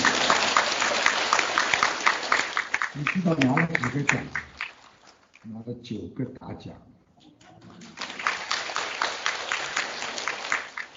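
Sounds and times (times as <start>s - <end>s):
audience applause: 0.0s - 4.9s, 7.7s - 10.9s
speech: 3.0s - 4.5s, 5.4s - 7.0s.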